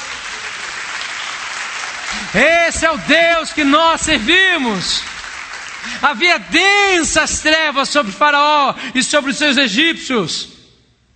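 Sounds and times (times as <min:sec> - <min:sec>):
church congregation applauding during a worship service: 0:00.0 - 0:07.7
speech: 0:02.1 - 0:05.1, 0:05.9 - 0:10.6.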